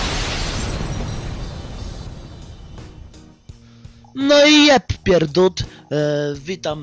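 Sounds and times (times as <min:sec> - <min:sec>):
explosion sound effect with deep rumbling blast: 0:00.0 - 0:03.6
speech: 0:04.2 - 0:06.8.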